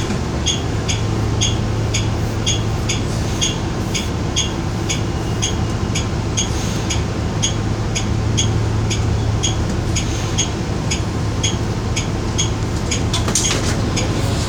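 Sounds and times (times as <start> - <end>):
turn signal ticking: 0.0 - 14.4.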